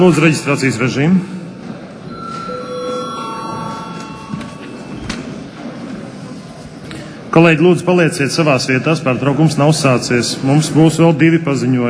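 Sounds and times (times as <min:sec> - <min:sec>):
speech: 0:00.0 - 0:01.4, 0:07.4 - 0:11.8
parliament session bell ringing for break: 0:02.0 - 0:05.7.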